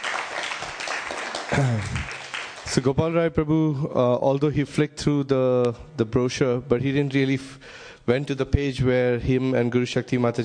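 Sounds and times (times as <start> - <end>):
audience applause: 0.0 - 2.8
speech: 1.5 - 10.4.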